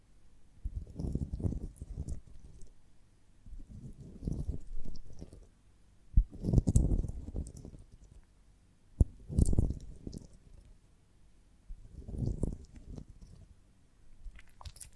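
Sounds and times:
honeycomb on a branch rubbing and crunching: 0.6 - 2.8, 3.5 - 5.6, 6.2 - 8.3, 9.0 - 10.8, 11.7 - 13.6, 14.3 - 14.9.

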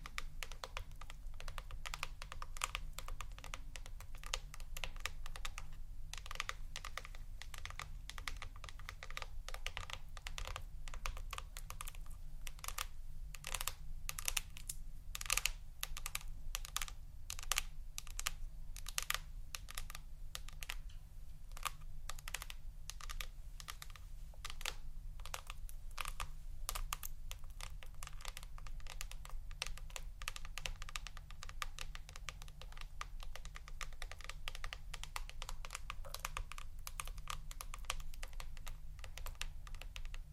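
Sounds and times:
rapid tapping on a computer keyboard: 0.1 - 20.8, 21.5 - 40.2.

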